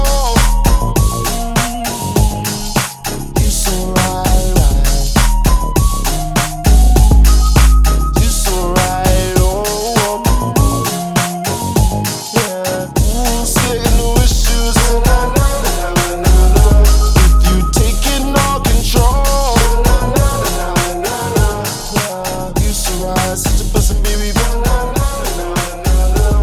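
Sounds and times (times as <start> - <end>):
electrowave mashup drum loop: 0.0 - 26.4.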